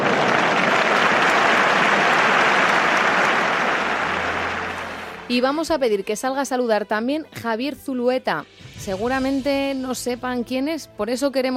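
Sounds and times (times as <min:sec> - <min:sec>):
sustained applause from a large crowd: 0:00.0 - 0:05.3
speech: 0:05.3 - 0:11.5.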